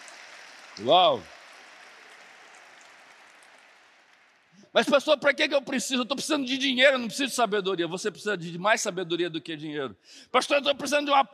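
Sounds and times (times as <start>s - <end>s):
audience applauding: 0.0s - 4.6s
speech: 0.8s - 1.3s, 4.7s - 11.3s.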